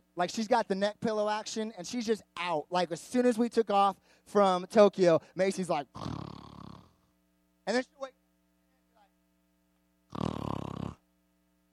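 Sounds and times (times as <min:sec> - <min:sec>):
speech: 0:00.2 - 0:06.2, 0:07.7 - 0:08.2
voice imitating snoring of someone asleep on an airplane flight: 0:05.9 - 0:07.1, 0:10.1 - 0:11.0.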